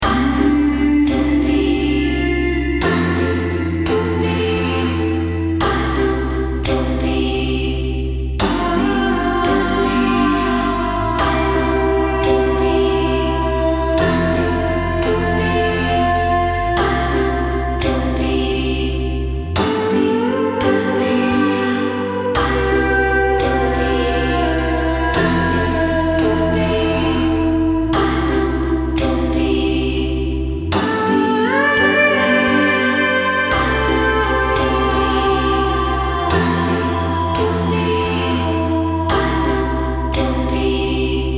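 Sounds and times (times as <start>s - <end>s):
healing melody: 0.0s - 41.3s.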